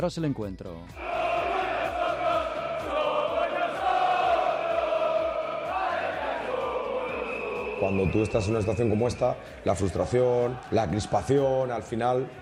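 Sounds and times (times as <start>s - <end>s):
speech: 0.0s - 1.2s, 7.8s - 12.4s
football fans chanting in protest: 0.9s - 12.4s.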